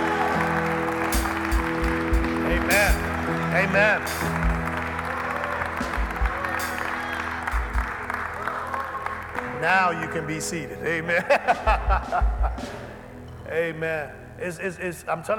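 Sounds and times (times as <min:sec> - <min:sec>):
audience hand clapping: 0:00.0 - 0:10.5
speech: 0:03.6 - 0:04.3, 0:09.6 - 0:12.9, 0:13.5 - 0:15.3
laughter: 0:09.9 - 0:13.1.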